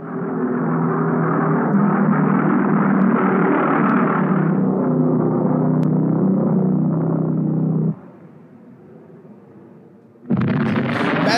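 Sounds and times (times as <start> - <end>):
V1 flying bomb pulse-jet engine: 0.0 - 11.3
loud blast: 10.3 - 11.3.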